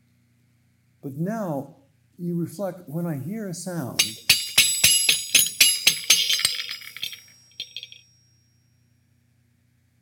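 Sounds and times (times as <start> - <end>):
speech: 1.0 - 4.3
Japanese horse bells jingling: 4.0 - 8.0.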